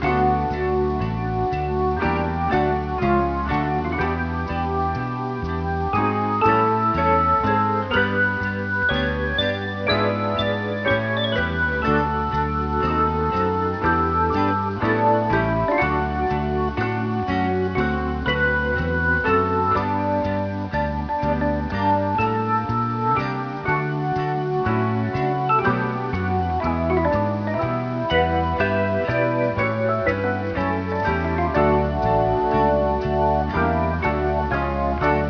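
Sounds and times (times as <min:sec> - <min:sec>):
jazz music: 0:00.0 - 0:35.2.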